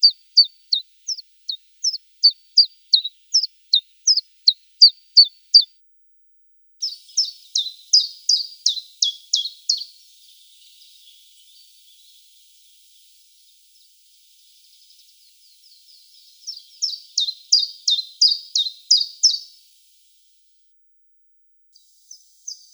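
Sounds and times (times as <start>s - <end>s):
East European subspecies of chiffchaff singing: 0.0s - 4.6s, 6.8s - 10.0s, 16.4s - 19.5s.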